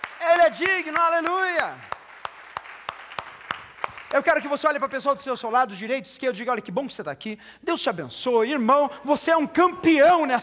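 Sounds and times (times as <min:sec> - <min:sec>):
audience clapping in time: 0:00.0 - 0:05.0
speech: 0:00.5 - 0:01.9, 0:04.1 - 0:10.4.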